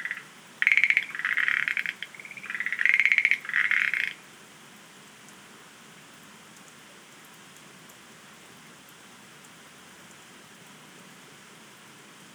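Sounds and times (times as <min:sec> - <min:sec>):
Schlegel's green tree frogs rattling croaks: 0:00.0 - 0:04.2.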